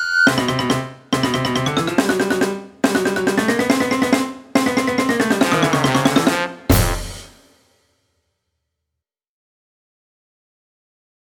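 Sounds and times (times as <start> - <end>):
cheerful and funny cartoon background music: 0.2 - 7.3.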